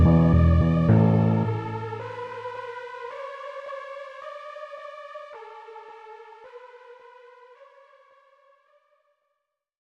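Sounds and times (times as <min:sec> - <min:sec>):
instrumental music: 0:00.0 - 0:02.6.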